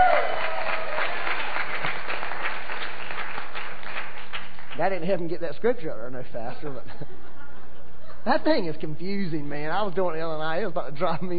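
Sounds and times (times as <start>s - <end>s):
audience applause: 0.0s - 5.1s
speech: 4.8s - 7.2s, 8.2s - 11.3s
laughter: 6.5s - 8.5s.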